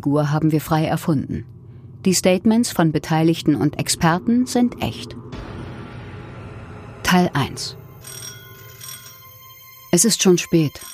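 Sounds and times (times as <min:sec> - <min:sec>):
speech: 0:00.0 - 0:05.5, 0:07.1 - 0:08.2, 0:10.0 - 0:10.9
doorbell ringing at the front door: 0:07.9 - 0:10.9.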